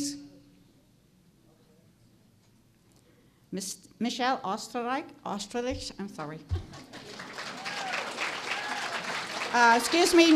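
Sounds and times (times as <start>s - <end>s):
speech: 3.5s - 6.9s, 9.5s - 10.3s
audience clapping: 6.6s - 10.3s.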